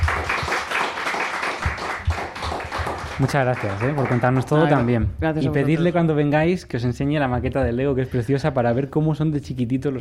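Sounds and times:
audience applause: 0:00.0 - 0:05.0
speech: 0:03.2 - 0:09.9.

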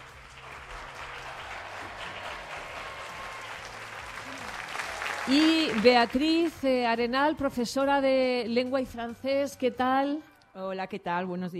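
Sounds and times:
audience applause: 0:00.0 - 0:06.6
speech: 0:05.3 - 0:11.5.

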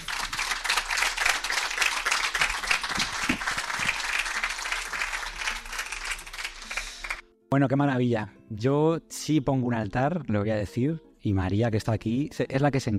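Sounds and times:
applause: 0:00.0 - 0:07.2
speech: 0:07.5 - 0:12.9.

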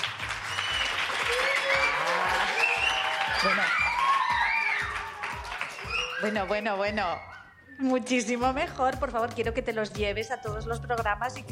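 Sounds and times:
large audience applause: 0:00.0 - 0:07.3
scattered whistles: 0:00.4 - 0:05.0, 0:05.6 - 0:08.1
cheering voices: 0:00.5 - 0:07.8
speech: 0:06.2 - 0:11.5.

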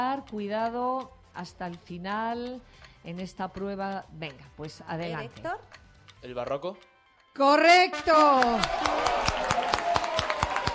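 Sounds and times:
speech: 0:00.0 - 0:09.5
teacher clapping during a classroom quiz contest: 0:07.9 - 0:10.7.

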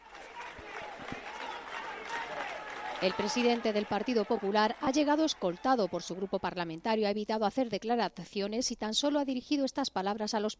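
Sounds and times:
supporters applauding Alberto Núñez Feijóo entering the Spanish Congress chamber: 0:00.0 - 0:06.6
speech: 0:03.0 - 0:10.5.

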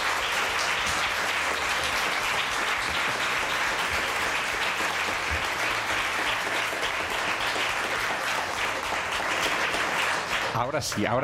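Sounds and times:
audience applause: 0:00.0 - 0:11.2
speech: 0:10.6 - 0:11.2.

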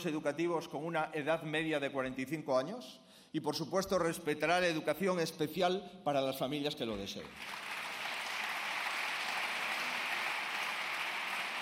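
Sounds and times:
speech: 0:00.0 - 0:07.7
applause from a sizeable audience: 0:07.3 - 0:11.5.

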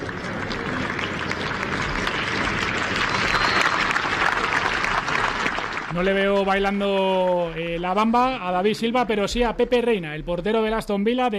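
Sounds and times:
applause for a departing footballer: 0:00.0 - 0:08.4
speech: 0:06.0 - 0:11.3.

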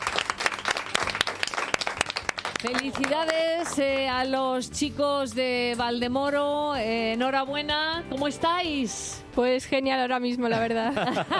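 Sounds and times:
audience applause: 0:00.0 - 0:03.8
speech: 0:02.6 - 0:11.3
laughter: 0:10.5 - 0:11.3.

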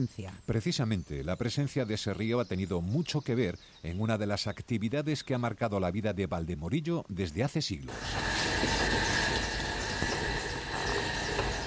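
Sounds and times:
speech: 0:00.0 - 0:09.1
potter's wheel turning: 0:07.9 - 0:11.6.

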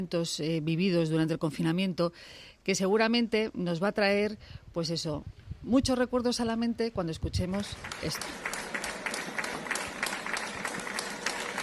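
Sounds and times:
speech: 0:00.0 - 0:08.6
applause from homes during lockdown: 0:07.6 - 0:11.6.

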